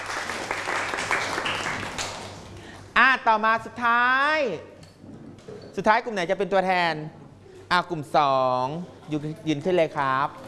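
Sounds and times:
group of people clapping: 0:00.0 - 0:02.5
speech: 0:03.2 - 0:04.8, 0:05.8 - 0:10.4.

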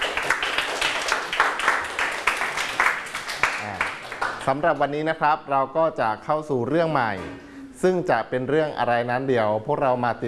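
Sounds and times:
students clapping for themselves: 0:00.0 - 0:04.8
speech: 0:04.5 - 0:10.2.

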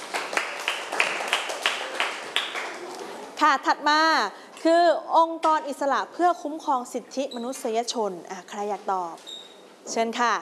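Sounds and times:
classroom applause: 0:00.0 - 0:03.2
speech: 0:03.4 - 0:09.3, 0:09.9 - 0:10.4.

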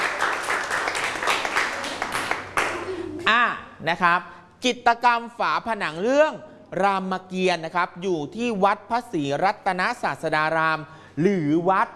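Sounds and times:
audience clapping for a classmate: 0:00.0 - 0:03.0
speech: 0:03.3 - 0:11.9.

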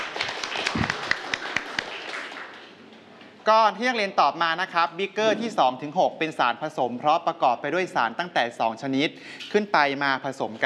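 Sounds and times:
students clapping for classmates: 0:00.0 - 0:02.9
speech: 0:03.5 - 0:10.6.

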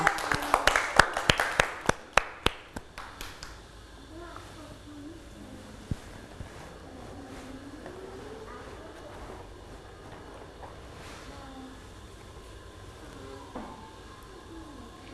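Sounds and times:
children clapping: 0:00.0 - 0:03.6.

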